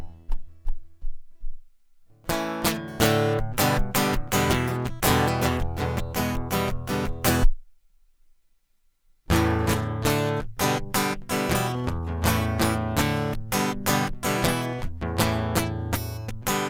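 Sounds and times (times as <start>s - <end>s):
guitar loop: 2.2s - 7.5s, 9.3s - 16.6s.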